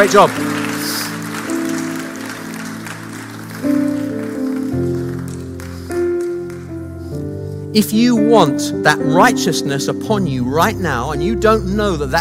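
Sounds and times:
speech: 0:00.0 - 0:01.0, 0:07.7 - 0:12.1
crowd applause: 0:00.0 - 0:06.8
keyboard or organ chords: 0:00.0 - 0:12.1.

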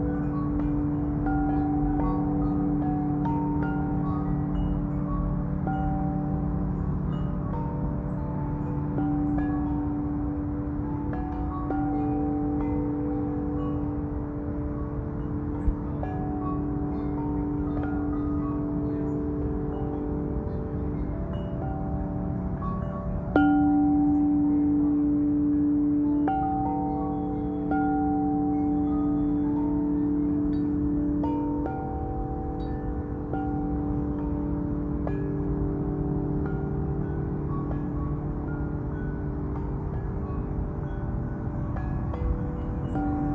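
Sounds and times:
chime tree ringing: 0:00.0 - 0:43.3.

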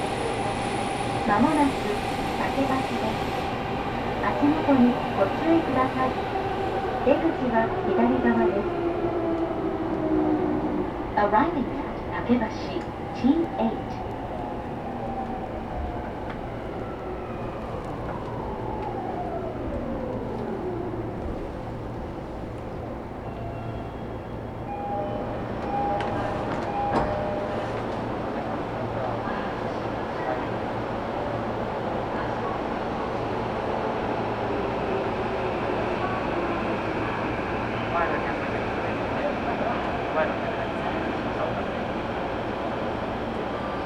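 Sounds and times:
Tokyo Metro train rumble: 0:00.0 - 0:43.8.

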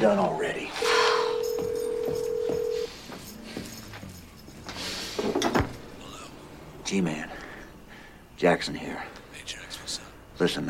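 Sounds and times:
speech: 0:00.0 - 0:01.0, 0:06.9 - 0:07.3, 0:08.4 - 0:09.2, 0:10.4 - 0:10.6
telephone dial tone: 0:01.3 - 0:02.9.

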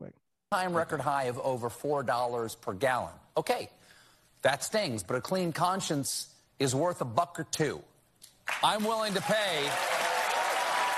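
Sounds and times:
speech: 0:00.1 - 0:03.8, 0:04.4 - 0:07.9, 0:08.5 - 0:10.0
studio audience applause in played clip: 0:08.5 - 0:10.9.

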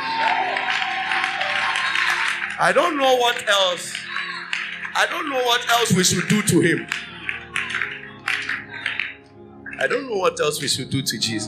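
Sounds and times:
people shouting praise: 0:00.0 - 0:06.9
people clapping: 0:00.0 - 0:10.1
speech: 0:02.6 - 0:04.0, 0:05.0 - 0:07.0, 0:09.8 - 0:11.4.

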